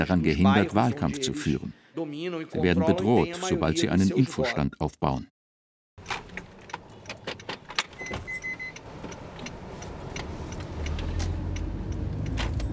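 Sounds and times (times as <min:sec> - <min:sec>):
speech: 0:00.0 - 0:05.3
car road noise on a drive to Rio das Pedras: 0:08.8 - 0:12.7.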